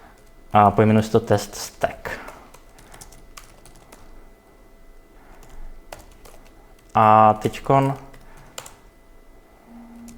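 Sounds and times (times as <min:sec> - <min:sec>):
speech: 0:00.5 - 0:02.1, 0:07.0 - 0:08.1
typing on a computer keyboard writing a code test: 0:02.2 - 0:04.2, 0:05.3 - 0:08.8.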